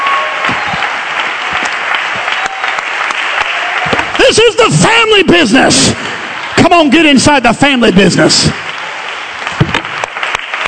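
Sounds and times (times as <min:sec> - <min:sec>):
crowd clapping: 0:00.0 - 0:04.8, 0:06.2 - 0:07.0, 0:07.8 - 0:10.6
speech: 0:04.3 - 0:08.7.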